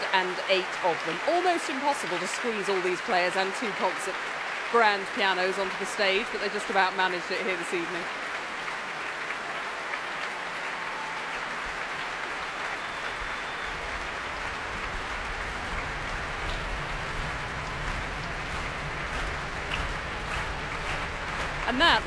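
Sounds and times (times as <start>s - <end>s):
capacity concert audience applauding after a performance by 108 players: 0.0s - 22.0s
speech: 0.2s - 8.2s, 21.7s - 22.0s.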